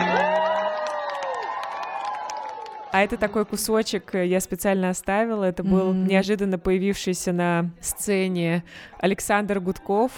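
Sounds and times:
concert audience shouts and whoops: 0.0s - 3.0s
concert audience clapping: 0.0s - 3.6s
speech: 2.9s - 10.1s.

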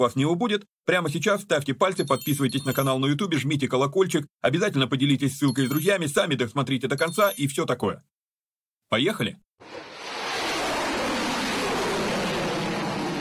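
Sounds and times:
speech: 0.0s - 8.1s, 8.9s - 9.9s
podcast intro whooshing roar: 9.6s - 13.1s.

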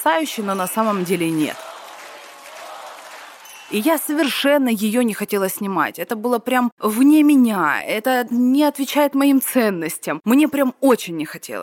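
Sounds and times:
speech: 0.0s - 1.7s, 3.7s - 11.6s
audience applause: 0.1s - 4.2s.

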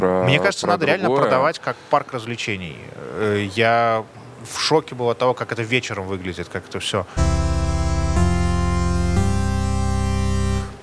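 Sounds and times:
speech: 0.0s - 7.5s
loud buzzy electronic siren tone: 7.2s - 10.8s.

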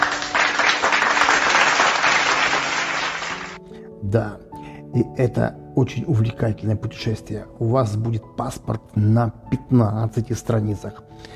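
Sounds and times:
applause: 0.0s - 3.6s
speech: 4.1s - 11.3s.

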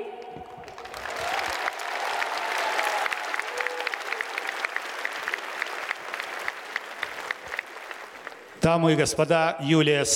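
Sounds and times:
crowd applause: 0.4s - 8.6s
crowd whooping and cheering: 0.7s - 7.6s
speech: 8.6s - 10.1s.

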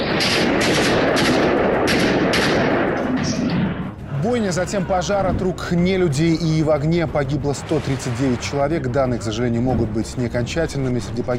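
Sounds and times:
gunfire in a concert hall attack: 0.0s - 4.0s
speech: 0.2s - 0.8s, 4.5s - 11.3s.

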